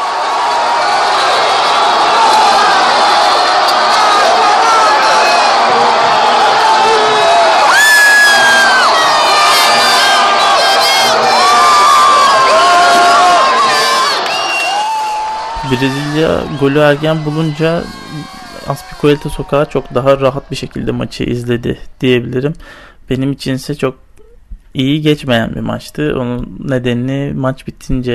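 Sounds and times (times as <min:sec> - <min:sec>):
street crowd screaming and cheering at a football goal: 0:00.0 - 0:21.8
speech: 0:15.8 - 0:24.0, 0:24.7 - 0:28.1.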